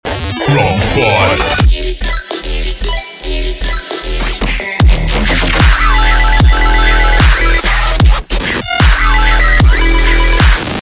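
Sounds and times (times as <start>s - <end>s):
remix music: 0.0s - 10.7s.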